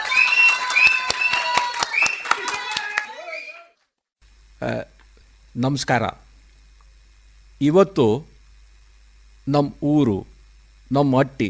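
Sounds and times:
people clapping rhythmically at a village gathering: 0.0s - 3.6s
speech: 4.6s - 4.9s, 5.6s - 6.2s, 7.6s - 8.3s, 9.5s - 10.3s, 10.9s - 11.4s.

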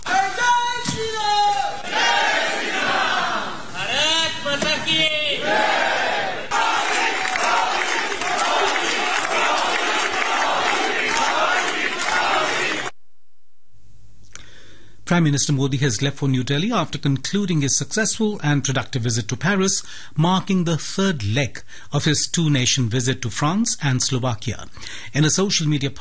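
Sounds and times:
crowd cheering: 0.0s - 12.9s
Indian community crowd in France chanting to welcome Prime Minister Modi: 1.6s - 12.9s
speech: 15.2s - 25.9s.

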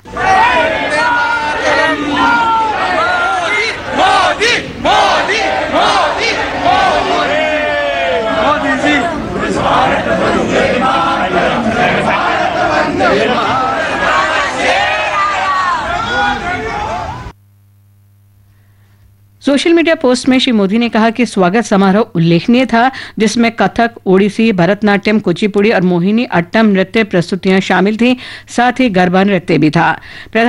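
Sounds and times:
large crowd chanting political slogans: 0.0s - 17.1s
speech: 19.5s - 30.4s.

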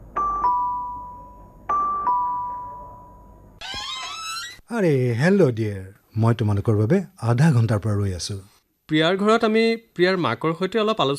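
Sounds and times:
two-tone doorbell ding-dong chime: 0.2s - 3.4s
speech: 4.7s - 11.1s.

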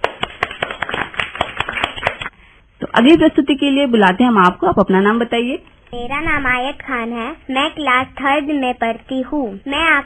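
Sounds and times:
children clapping: 0.0s - 2.3s
speech: 3.0s - 10.0s.

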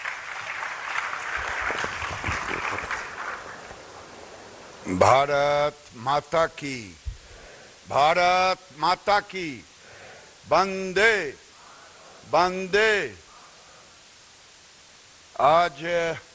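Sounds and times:
audience applause welcoming India's Union Textiles Minister at National Handloom Day: 0.0s - 5.2s
speech: 4.9s - 7.0s, 7.9s - 9.7s, 10.5s - 11.4s, 12.3s - 13.2s, 15.4s - 16.3s.

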